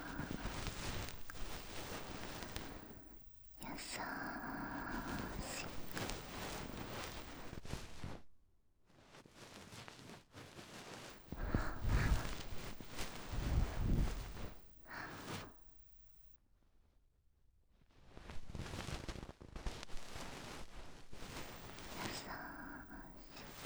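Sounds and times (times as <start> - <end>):
person whispering in the right ear: 0.0 - 6.9, 11.3 - 14.3, 21.8 - 23.6
bonten fluff brushing the right ear: 0.0 - 8.2, 9.4 - 15.4, 18.5 - 23.6.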